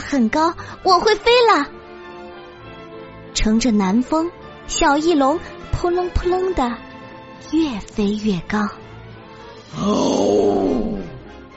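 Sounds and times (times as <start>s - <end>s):
speech: 0.1s - 1.8s, 3.4s - 6.9s, 7.5s - 8.8s, 9.7s - 11.0s
Tyrannosaurus rex roaring: 9.6s - 11.3s.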